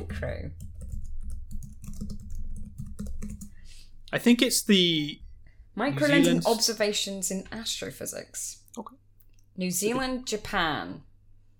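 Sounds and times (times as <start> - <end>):
speech: 0.0 - 0.7, 4.1 - 5.2, 5.8 - 9.0, 9.6 - 11.1
typing on a computer keyboard: 0.6 - 3.5.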